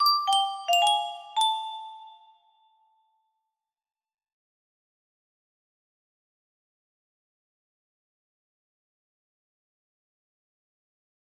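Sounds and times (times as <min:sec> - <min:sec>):
music box: 0:00.0 - 0:02.9.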